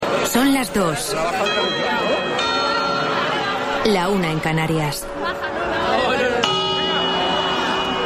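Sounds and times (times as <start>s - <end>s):
speech: 0.3s - 2.3s, 3.8s - 5.5s
Puerta del Sol clock in Madrid chiming midnight: 1.3s - 5.7s, 6.3s - 8.0s.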